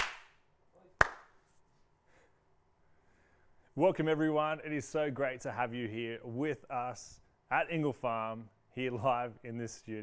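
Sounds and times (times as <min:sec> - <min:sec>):
hand clap: 0:00.0 - 0:01.6
speech: 0:03.8 - 0:10.0.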